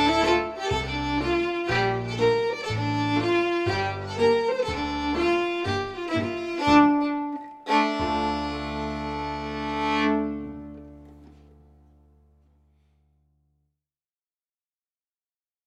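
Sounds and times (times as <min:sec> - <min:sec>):
fiddle: 0:00.0 - 0:11.8
piano: 0:00.0 - 0:12.8.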